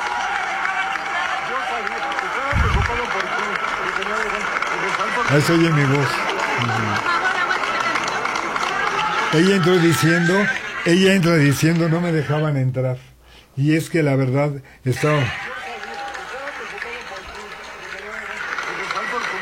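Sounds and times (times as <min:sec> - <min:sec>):
theater audience ovation: 0:00.0 - 0:12.4, 0:14.9 - 0:19.4
laughter: 0:02.3 - 0:12.6, 0:15.0 - 0:19.4
speech: 0:05.3 - 0:07.2, 0:09.3 - 0:15.4.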